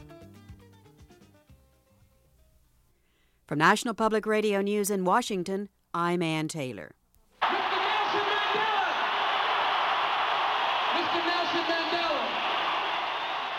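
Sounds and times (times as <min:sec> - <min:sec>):
speech: 0:03.5 - 0:07.0
crowd cheering and applauding in a London concert hall: 0:07.4 - 0:13.5.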